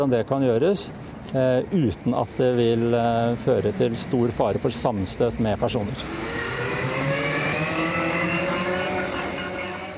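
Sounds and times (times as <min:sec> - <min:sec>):
speech: 0:00.0 - 0:06.6
electric self-balancing Segway motor whine: 0:05.7 - 0:09.9.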